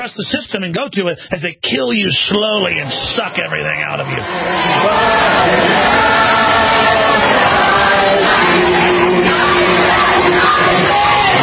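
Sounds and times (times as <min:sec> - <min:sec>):
speech: 0:00.0 - 0:06.4
crowd chanting: 0:02.8 - 0:11.4.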